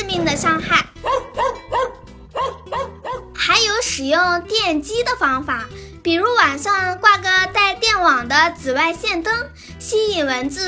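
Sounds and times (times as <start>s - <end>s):
speech: 0.1s - 0.9s, 4.0s - 10.6s
small dog barking: 1.0s - 3.3s.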